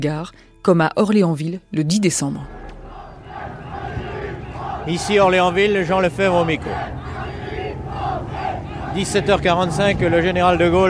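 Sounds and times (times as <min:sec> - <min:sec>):
speech: 0:00.0 - 0:02.6, 0:04.8 - 0:07.1, 0:09.0 - 0:10.8
vehement crowd shouting slogans: 0:02.4 - 0:10.8.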